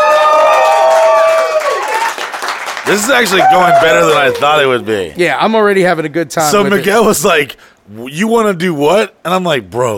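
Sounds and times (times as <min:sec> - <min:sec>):
audience clapping: 0:00.0 - 0:04.8
speech: 0:02.9 - 0:09.9.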